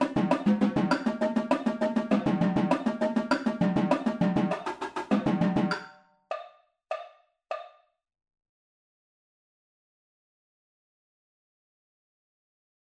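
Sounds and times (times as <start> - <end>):
tenor drum triple beat: 0.0 - 5.8.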